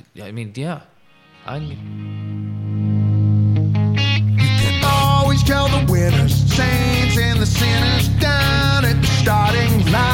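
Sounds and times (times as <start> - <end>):
speech: 0.2 - 2.3
sustained heavily distorted guitar chord: 1.8 - 10.1
bright rhythmic drums: 4.8 - 10.1.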